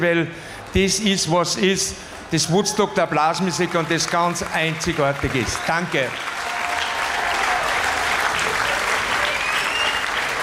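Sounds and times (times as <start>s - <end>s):
speech: 0.0s - 6.4s
audience applause: 2.2s - 10.4s.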